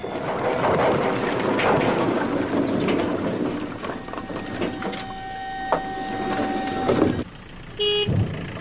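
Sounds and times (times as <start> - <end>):
truck driving away after unloading firewood: 0.0 - 8.5
brief tones: 3.9 - 7.2.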